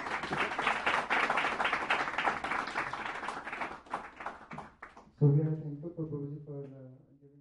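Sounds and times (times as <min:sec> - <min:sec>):
round of applause from a crowd: 0:00.0 - 0:05.0
speech: 0:05.2 - 0:06.8.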